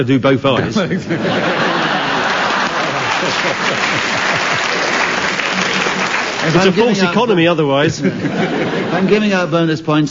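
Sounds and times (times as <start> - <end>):
speech: 0.0 - 2.0, 3.2 - 4.8, 6.4 - 10.1
laughter: 0.6 - 9.5
audience applause: 1.3 - 7.4.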